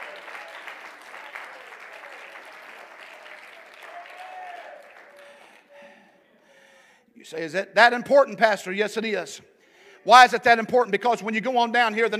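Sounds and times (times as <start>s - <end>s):
audience clapping: 0.0s - 5.7s
speech: 7.2s - 12.1s.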